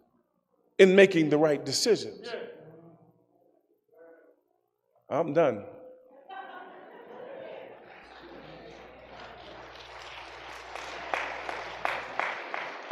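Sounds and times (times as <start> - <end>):
speech: 0.8 - 2.5, 5.1 - 5.8
laughter: 6.2 - 12.6
audience clapping: 7.8 - 12.9.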